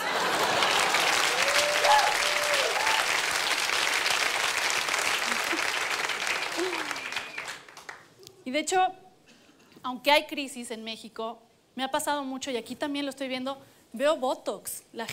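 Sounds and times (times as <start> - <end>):
audience applause: 0.0 - 8.1
scattered voices and whoops: 1.4 - 3.0
speech: 8.6 - 9.0, 9.8 - 15.1.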